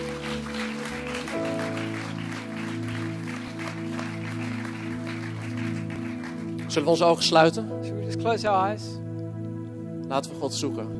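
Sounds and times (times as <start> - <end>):
audience clapping: 0.0 - 7.5
keyboard or organ chords: 0.0 - 10.9
speech: 6.8 - 9.0, 10.1 - 10.9.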